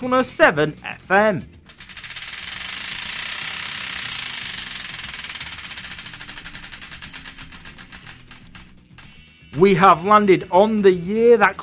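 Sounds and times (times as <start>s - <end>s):
speech: 0.0s - 1.6s, 9.6s - 11.6s
Wheel of Destiny spun on a radio show: 1.6s - 9.3s.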